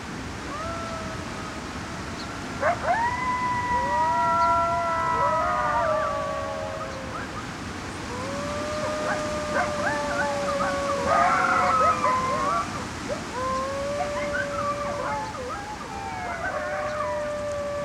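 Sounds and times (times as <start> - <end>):
coyote family howling: 0.4 - 17.8.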